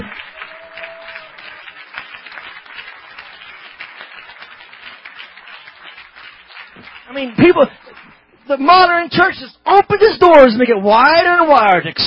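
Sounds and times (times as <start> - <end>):
audience clapping: 0.0 - 8.3
speech: 7.1 - 7.8, 8.5 - 12.0.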